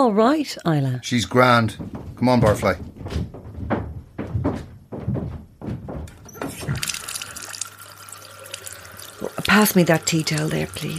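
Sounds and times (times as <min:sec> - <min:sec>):
speech: 0:00.0 - 0:03.3, 0:09.5 - 0:10.9
water splashing on face: 0:06.3 - 0:10.9.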